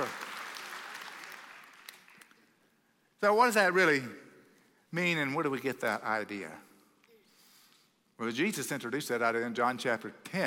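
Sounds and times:
crowd clapping: 0.0s - 2.5s
speech: 3.2s - 4.2s, 4.9s - 6.7s, 8.2s - 10.4s.

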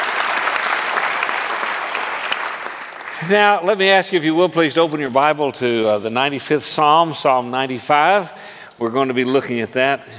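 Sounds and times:
audience applause at a morning gathering: 0.0s - 3.6s
speech: 3.2s - 10.1s.

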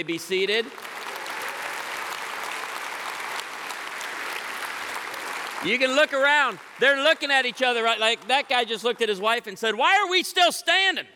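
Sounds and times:
speech: 0.0s - 1.1s, 5.6s - 11.1s
audience applause: 0.6s - 9.0s.

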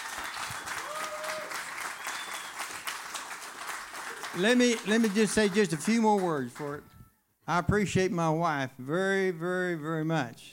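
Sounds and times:
hand clapping: 0.0s - 6.8s
speech: 4.4s - 6.9s, 7.5s - 10.5s.

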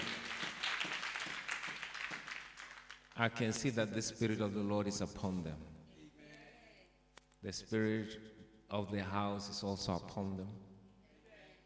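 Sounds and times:
audience clapping hands: 0.0s - 3.5s
speech: 3.2s - 5.8s, 7.4s - 10.7s.

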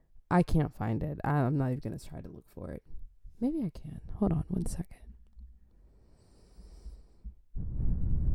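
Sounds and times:
speech: 0.3s - 5.0s
breathing into microphone: 5.7s - 8.2s.

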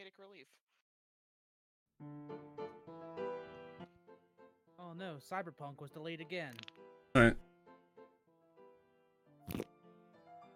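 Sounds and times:
speech: 0.2s - 0.8s, 2.0s - 2.6s, 5.0s - 7.4s
fart putty squelching: 9.5s - 9.7s.

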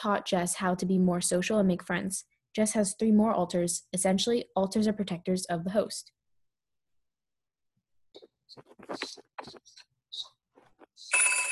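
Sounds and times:
speech: 0.0s - 6.2s, 8.2s - 11.5s
telephone ringing: 11.1s - 11.5s.

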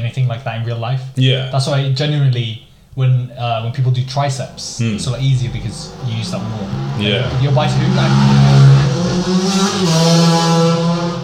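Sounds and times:
speech: 0.1s - 10.8s
two motorbikes racing past outside: 3.8s - 11.2s.

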